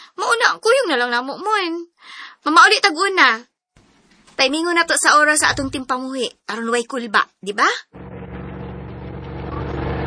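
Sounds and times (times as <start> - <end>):
speech: 0.2 - 3.5, 4.4 - 8.0
jeep engine arriving: 8.0 - 10.0.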